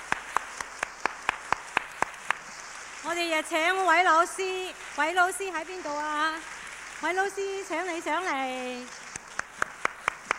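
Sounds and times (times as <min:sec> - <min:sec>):
audience applause: 0:00.0 - 0:03.0, 0:05.8 - 0:10.3
speech: 0:03.1 - 0:09.0.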